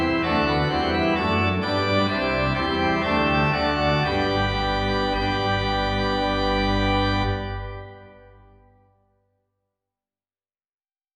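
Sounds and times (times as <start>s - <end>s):
organ bells: 0.0s - 8.8s.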